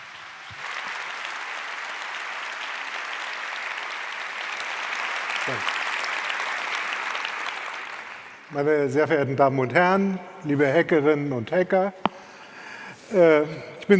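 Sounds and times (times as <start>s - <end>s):
audience applause: 0.0s - 8.5s
speech: 5.5s - 5.7s, 8.5s - 12.1s, 13.1s - 13.9s.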